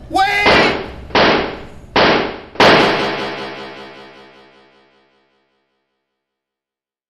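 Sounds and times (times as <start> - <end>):
person shouting: 0.0 - 0.8
gunshots as police fire on a man: 0.4 - 4.6.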